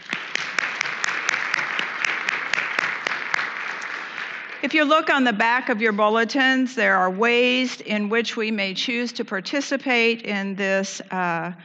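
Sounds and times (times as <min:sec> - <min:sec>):
audience applause: 0:00.0 - 0:04.6
speech: 0:04.6 - 0:11.6.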